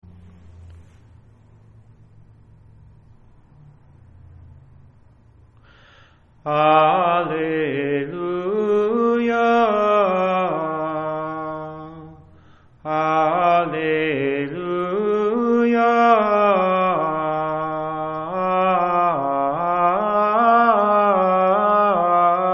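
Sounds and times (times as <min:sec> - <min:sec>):
alleluia psalm tone sacred chant: 0:06.4 - 0:22.5.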